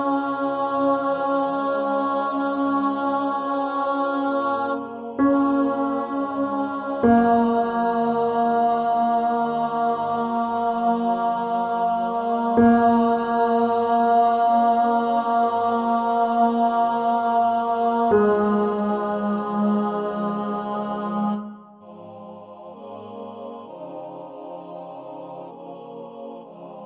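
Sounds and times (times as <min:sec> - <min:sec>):
alto voice singing a Las Posadas song: 0:00.0 - 0:26.8.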